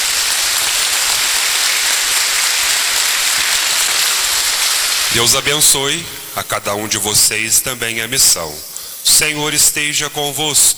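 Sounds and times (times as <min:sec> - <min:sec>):
applause: 0:00.0 - 0:05.7
speech: 0:05.1 - 0:10.7.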